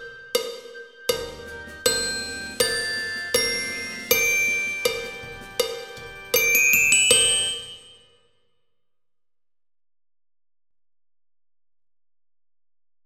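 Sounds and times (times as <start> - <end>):
glockenspiel: 0.0 - 8.5.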